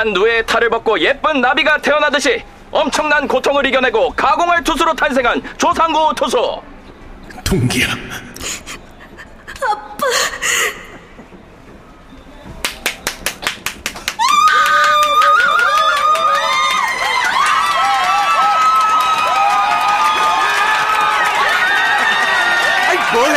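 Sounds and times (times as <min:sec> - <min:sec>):
speech: 0:00.0 - 0:06.7, 0:07.4 - 0:08.7, 0:09.6 - 0:10.8
laughter: 0:08.4 - 0:11.0, 0:21.4 - 0:23.3
baseball stadium crowd cheering: 0:12.6 - 0:23.3.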